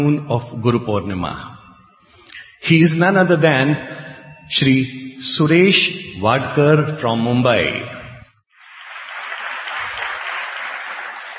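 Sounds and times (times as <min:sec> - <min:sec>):
speech: 0:00.0 - 0:01.6, 0:02.6 - 0:08.0
audience clapping: 0:08.6 - 0:11.3.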